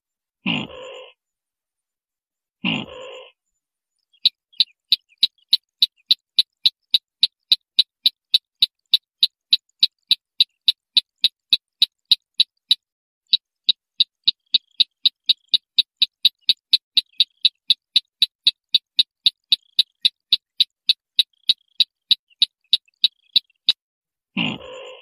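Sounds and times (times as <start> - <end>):
white-breasted waterhen train of sharp clicks: 4.2 - 23.8.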